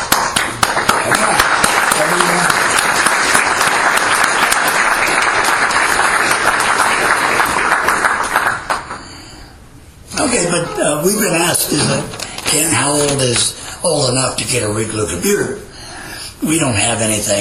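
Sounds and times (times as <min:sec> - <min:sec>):
audience applause: 0:00.0 - 0:09.2
speech: 0:11.0 - 0:15.6, 0:16.4 - 0:17.3.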